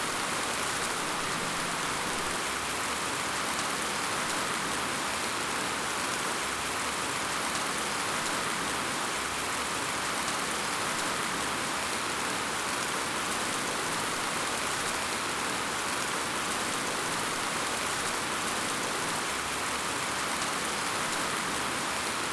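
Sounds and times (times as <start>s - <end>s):
continuous rain: 0.0s - 22.3s.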